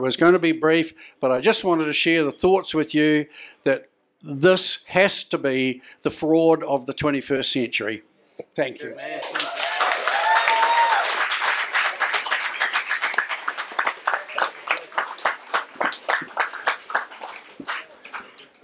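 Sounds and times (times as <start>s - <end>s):
speech: 0.0s - 9.6s
big round of audience applause: 9.2s - 18.6s.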